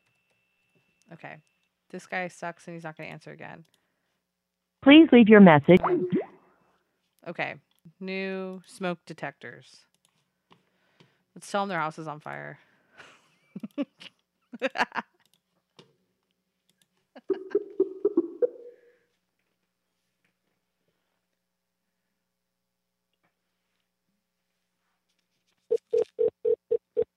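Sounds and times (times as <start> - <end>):
speech: 1.1 - 3.8, 4.8 - 6.2, 7.2 - 9.9, 11.4 - 13.1, 13.8 - 15.1
phone line ringback tone: 25.9 - 27.1.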